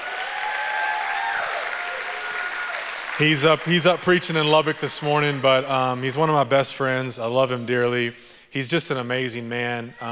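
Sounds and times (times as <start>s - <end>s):
audience applauding: 0.0s - 6.4s
speech: 3.2s - 10.0s.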